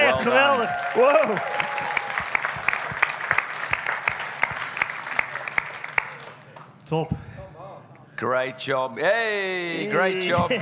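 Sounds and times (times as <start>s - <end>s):
crowd clapping: 0.0s - 6.8s
speech: 0.2s - 1.6s, 6.9s - 7.3s, 8.2s - 10.6s.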